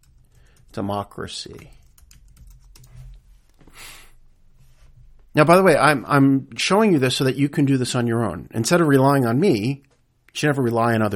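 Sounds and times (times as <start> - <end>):
typing a search on a computer keyboard: 0.0 - 0.8, 1.5 - 3.2
speech: 0.8 - 1.8, 5.3 - 11.1.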